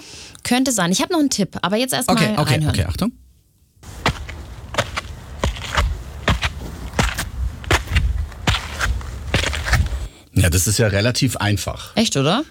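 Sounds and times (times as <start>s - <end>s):
speech: 0.0s - 3.2s, 10.5s - 12.4s
footsteps climbing the Himmelsleiter stairs up Königsstuhl in Heidelberg: 4.0s - 10.0s.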